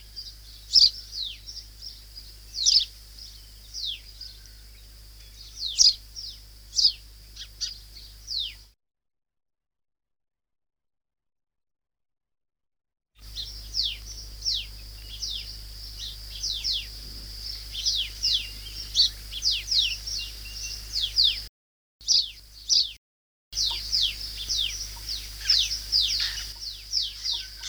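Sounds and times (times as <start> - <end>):
white-eye calling: 0.0 - 8.7, 13.2 - 23.0, 23.6 - 27.6.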